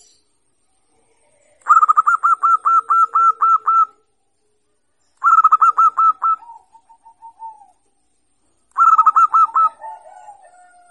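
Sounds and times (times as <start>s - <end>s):
zebra dove singing: 1.0s - 4.1s, 5.2s - 7.9s, 8.7s - 10.8s.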